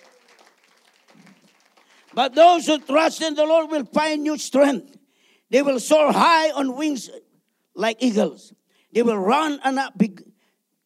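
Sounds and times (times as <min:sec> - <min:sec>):
audience clapping: 0:00.0 - 0:03.7
speech: 0:02.1 - 0:10.3.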